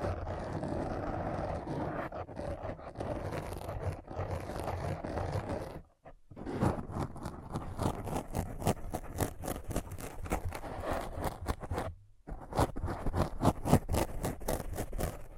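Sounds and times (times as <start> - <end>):
raspy scratching strokes: 0.0 - 15.3.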